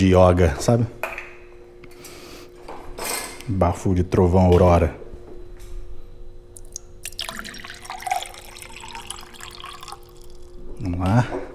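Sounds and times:
speech: 0:00.0 - 0:01.2, 0:03.5 - 0:05.0, 0:10.8 - 0:11.4
cold water pouring: 0:06.6 - 0:10.7.

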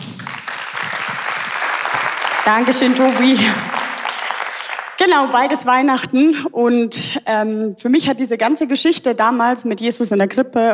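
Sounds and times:
audience applause: 0:00.0 - 0:05.6
speech: 0:02.4 - 0:03.7, 0:05.0 - 0:10.7.

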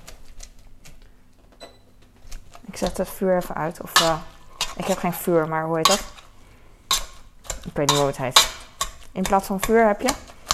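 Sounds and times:
potatoes mashed with a masher striking the pot: 0:02.2 - 0:10.5
speech: 0:02.8 - 0:06.1, 0:07.7 - 0:08.5, 0:09.2 - 0:10.3.

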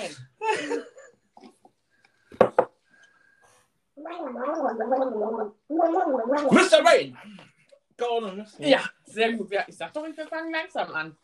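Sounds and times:
person gargling water: 0:04.0 - 0:06.5
speech: 0:04.1 - 0:07.4, 0:08.0 - 0:11.2.

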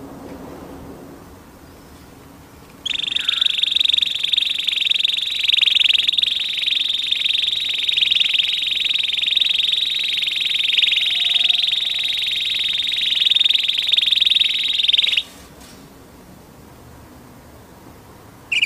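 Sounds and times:
orange canary singing a rolling trill: 0:02.8 - 0:15.3.

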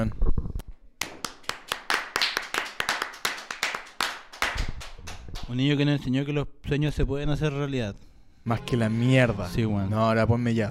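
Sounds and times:
audience clapping: 0:01.0 - 0:05.6
speech: 0:05.5 - 0:10.6.

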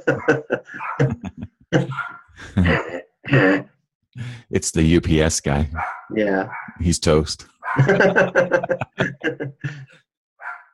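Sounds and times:
speech: 0:00.0 - 0:02.0, 0:04.5 - 0:10.0
laughter: 0:00.0 - 0:02.8, 0:07.8 - 0:10.0
small dog barking: 0:01.9 - 0:02.2, 0:05.8 - 0:06.8, 0:10.4 - 0:10.7.

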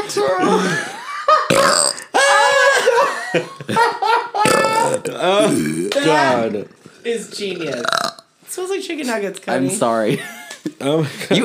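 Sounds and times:
speech: 0:00.2 - 0:01.0, 0:05.2 - 0:11.4
loud burp: 0:01.5 - 0:02.2, 0:04.4 - 0:06.1, 0:07.5 - 0:08.3
laughter: 0:02.1 - 0:05.0, 0:10.1 - 0:11.4.

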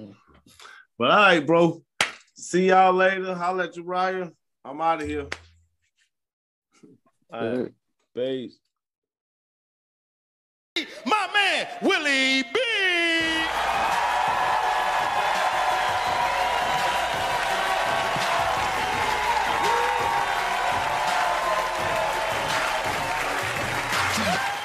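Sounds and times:
speech: 0:00.0 - 0:05.4, 0:06.8 - 0:08.6, 0:11.3 - 0:14.0
cheers and shouting voices: 0:11.0 - 0:24.6
audience applause: 0:13.2 - 0:24.6.

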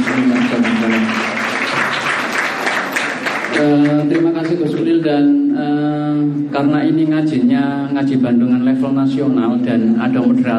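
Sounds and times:
audience applauding at an Islamic study gathering: 0:00.0 - 0:04.8
speech: 0:03.6 - 0:05.7, 0:06.6 - 0:10.5.

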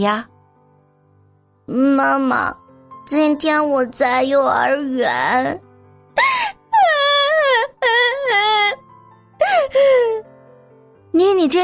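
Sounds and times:
speech: 0:00.0 - 0:00.3, 0:01.7 - 0:05.6, 0:06.2 - 0:06.5, 0:11.2 - 0:11.6
little girl wailing to her mother: 0:06.2 - 0:08.8.

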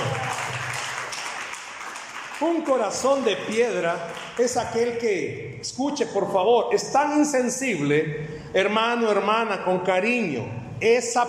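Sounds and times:
audience applause: 0:00.0 - 0:04.5
speech: 0:02.4 - 0:11.2.

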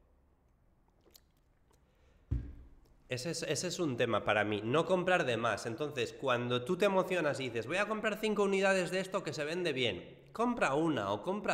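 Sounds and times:
person sipping coffee: 0:00.9 - 0:01.9
speech: 0:03.1 - 0:11.5.

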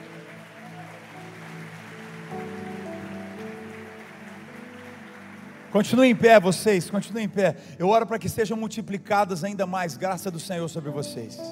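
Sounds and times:
audience applauding: 0:00.0 - 0:07.4
speech: 0:05.7 - 0:11.5.

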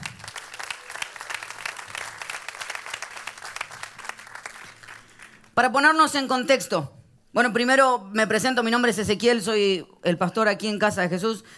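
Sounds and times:
audience giving loud applause: 0:00.0 - 0:05.6
speech: 0:05.6 - 0:11.5.

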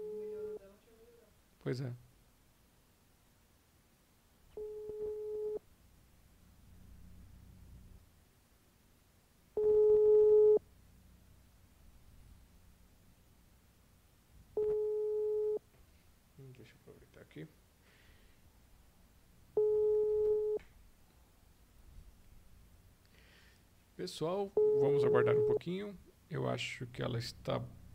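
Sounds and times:
telephone busy tone beeps after a dropped phone call: 0:00.0 - 0:00.6, 0:04.5 - 0:05.6, 0:09.6 - 0:10.6, 0:14.6 - 0:15.6, 0:19.6 - 0:20.6, 0:24.6 - 0:25.6
speech: 0:01.6 - 0:02.1, 0:24.1 - 0:27.8.

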